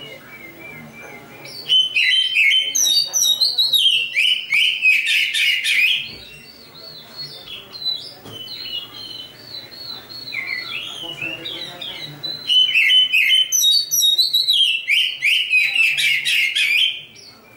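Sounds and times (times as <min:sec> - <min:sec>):
Oriental magpie-robin singing chattering song: 0:00.0 - 0:17.5.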